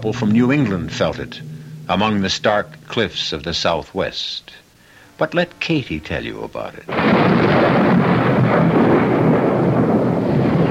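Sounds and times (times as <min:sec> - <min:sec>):
speech: 0:00.0 - 0:04.6, 0:05.2 - 0:07.9
crashing thunder in a thunderstorm: 0:06.9 - 0:10.7.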